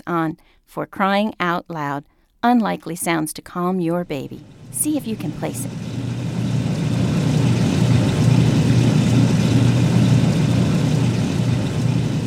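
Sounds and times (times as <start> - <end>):
speech: 0.0 - 5.9
washing machine running: 4.1 - 12.2.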